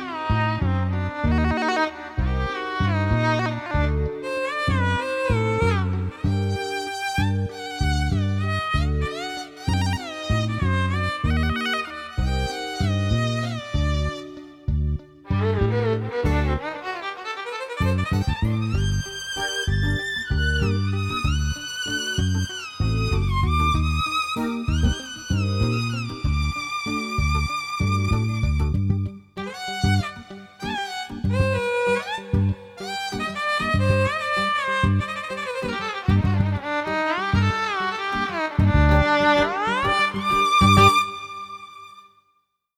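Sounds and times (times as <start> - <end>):
soft violin: 0.0 - 42.2.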